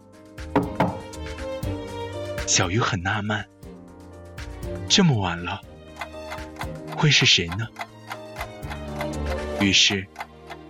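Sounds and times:
knocking on a door: 0.5s - 1.1s
speech: 2.5s - 3.5s, 4.7s - 5.7s, 7.0s - 7.9s, 9.6s - 10.2s.

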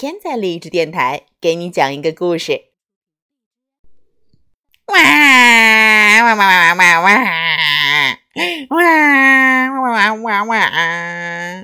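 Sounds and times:
speech: 0.0s - 2.7s, 4.9s - 11.6s
voice imitating a tiger cub crying: 4.9s - 11.6s.

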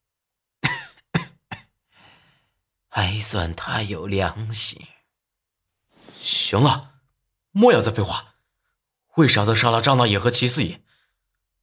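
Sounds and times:
man coughing: 0.6s - 1.8s
speech: 3.0s - 5.0s, 6.2s - 6.9s, 7.6s - 8.3s, 9.2s - 10.9s.

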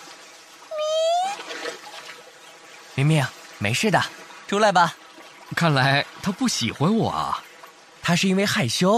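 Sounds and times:
dolphin calling: 0.7s - 1.6s
speech: 3.0s - 8.9s.

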